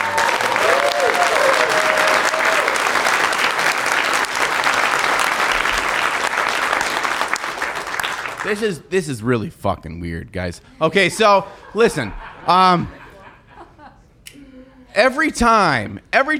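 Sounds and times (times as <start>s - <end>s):
audience applause: 0.0s - 8.6s
speech: 8.5s - 13.0s, 15.0s - 16.3s
laughter: 10.7s - 14.9s.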